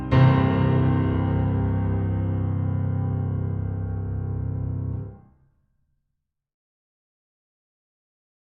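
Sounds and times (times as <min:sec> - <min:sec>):
piano sonata first movement: 0:00.0 - 0:05.2.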